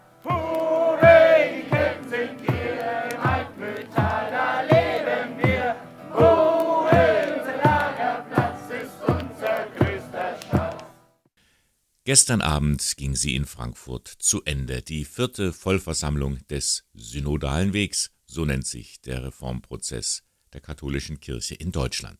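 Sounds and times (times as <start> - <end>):
group of boys chanting a camp song: 0.2 - 10.9
rhythmic claps or stomps: 0.2 - 11.0
speech: 12.1 - 22.1.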